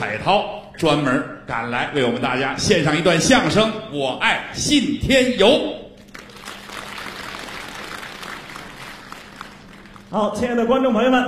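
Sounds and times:
speech: 0.0s - 5.8s, 10.1s - 11.2s
audience applauding crosstalk performers at a New Year show: 6.0s - 10.3s.

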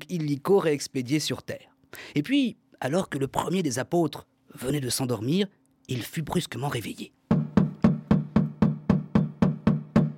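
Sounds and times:
speech: 0.1s - 7.2s
firm knocking on a door: 7.3s - 10.1s.

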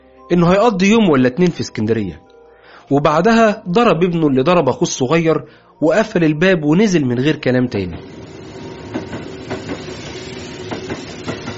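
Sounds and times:
speech: 0.3s - 2.2s, 2.9s - 8.2s
train rumbling on rails: 7.9s - 11.5s
wheels clacking on track joints: 10.6s - 11.5s.

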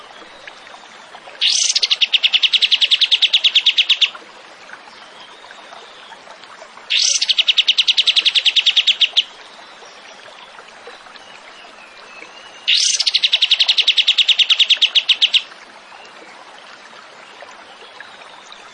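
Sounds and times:
zebra finch trilling: 1.4s - 4.1s, 6.9s - 9.2s, 12.7s - 15.4s.

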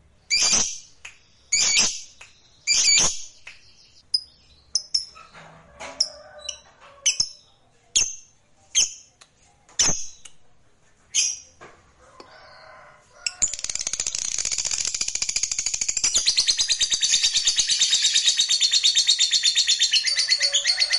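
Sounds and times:
lovebird chirping and trilling: 0.3s - 5.4s, 6.5s - 9.1s, 11.1s - 11.5s, 13.3s - 20.9s.

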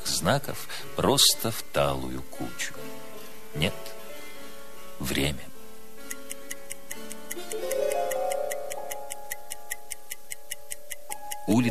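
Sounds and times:
speech: 0.2s - 2.9s, 3.6s - 4.0s, 5.0s - 5.5s, 11.5s - 11.7s
clockwork bomb in a sardine tin ticking: 6.0s - 11.7s.

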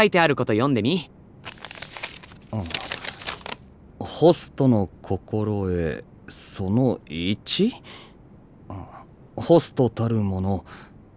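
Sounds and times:
speech: 0.0s - 1.2s, 2.5s - 2.8s, 4.0s - 8.1s, 8.7s - 10.9s
sheet of paper crinkling as it is unfolded: 1.5s - 3.6s.

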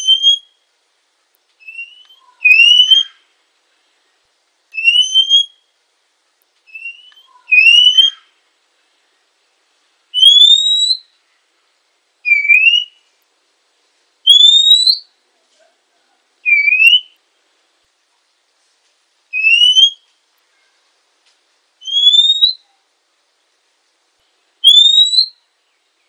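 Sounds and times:
female Oriental magpie-robin whistled notes: 1.6s - 3.2s, 4.8s - 5.6s, 6.7s - 8.2s, 10.2s - 11.1s, 12.3s - 13.0s, 14.3s - 15.1s, 16.5s - 17.2s, 19.4s - 20.1s, 21.8s - 22.8s, 24.6s - 25.4s.

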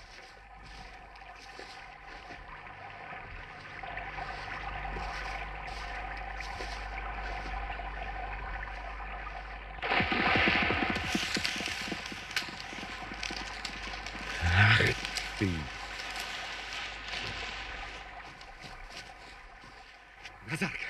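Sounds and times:
steady low hum: 0.0s - 20.5s
startled large wild boar crashing through brush at the water's edge: 9.9s - 19.2s
rustle: 11.1s - 19.2s.

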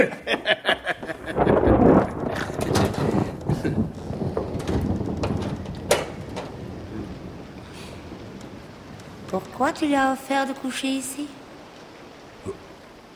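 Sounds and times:
speech: 0.0s - 1.3s, 9.3s - 11.4s
laughter: 0.0s - 1.7s
steady dense rain hissing: 0.0s - 13.1s
low thunder rumble: 1.0s - 12.8s
sharp cracks and knocks: 1.4s - 9.6s.

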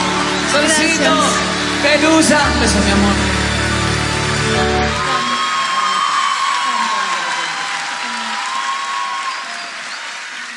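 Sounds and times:
crowd applause and cheering at a cumbia performance: 0.0s - 10.5s
speech: 1.0s - 3.4s, 4.5s - 5.0s
high whoop or whistle: 4.9s - 10.5s.

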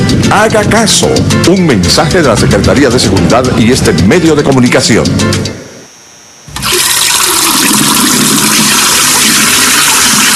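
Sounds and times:
speech: 0.3s - 5.6s
water running and overflowing from tap: 6.6s - 10.3s.

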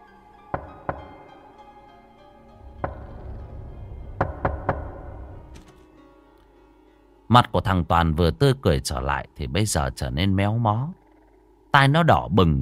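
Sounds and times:
knocking on a door: 0.5s - 1.4s, 2.6s - 5.5s
speech: 7.3s - 11.0s, 11.7s - 12.5s.

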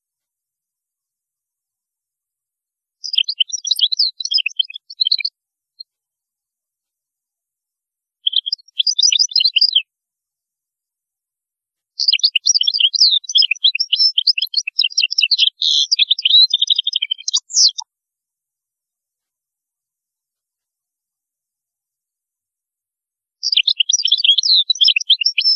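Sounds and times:
European goldfinch song: 3.0s - 5.3s, 8.3s - 9.8s, 12.0s - 17.8s, 23.4s - 25.5s.

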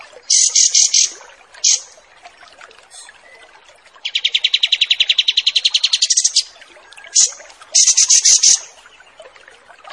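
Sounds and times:
Kapas tembak song: 0.3s - 1.9s, 2.9s - 8.7s.

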